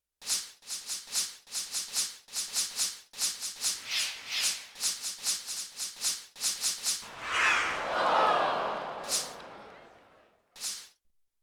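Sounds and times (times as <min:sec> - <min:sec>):
shaker: 0:00.0 - 0:07.1, 0:08.7 - 0:10.0, 0:10.6 - 0:10.9
laughter: 0:07.1 - 0:10.3.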